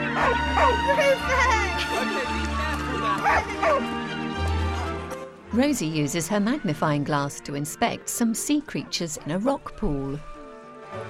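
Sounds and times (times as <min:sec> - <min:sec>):
dog barking and yipping excitedly: 0:00.2 - 0:01.0, 0:03.2 - 0:03.9
laughter: 0:00.2 - 0:03.9
speech: 0:03.2 - 0:04.0, 0:05.6 - 0:10.3.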